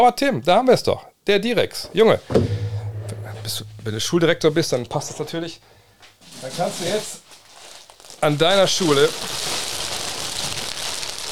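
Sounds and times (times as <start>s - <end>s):
speech: 0.0s - 2.6s, 3.4s - 7.2s, 8.2s - 9.5s
crackling plastic packaging being handled: 6.6s - 11.2s.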